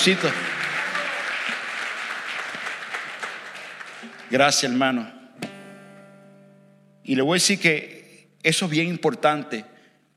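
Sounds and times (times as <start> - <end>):
speech: 0.0 - 0.5, 4.3 - 5.2, 7.1 - 9.7
audience applause: 0.0 - 4.6.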